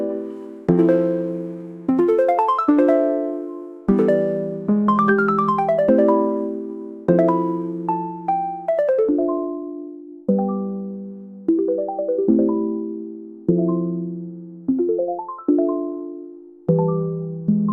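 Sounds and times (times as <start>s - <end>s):
chiptune music: 0.0s - 17.7s.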